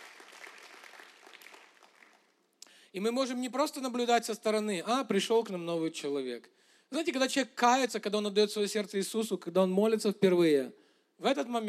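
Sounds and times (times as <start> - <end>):
audience applause: 0.0 - 2.3
speech: 2.9 - 11.6.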